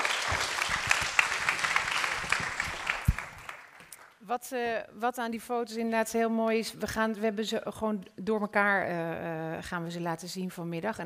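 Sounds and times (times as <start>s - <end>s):
audience applause: 0.0s - 4.2s
speech: 4.3s - 11.0s.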